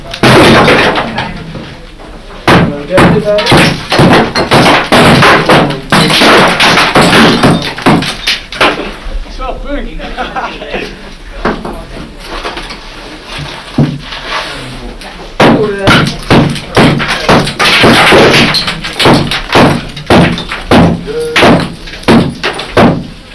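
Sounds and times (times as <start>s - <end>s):
large stone blocks breaking loose during demolition: 0.0s - 1.6s, 2.5s - 9.0s, 15.4s - 23.2s
laughter: 9.8s - 11.4s.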